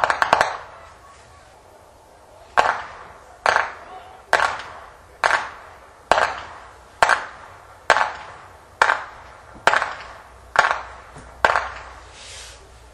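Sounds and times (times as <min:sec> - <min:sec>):
whip cracking in Flachgau: 0:02.6 - 0:12.1.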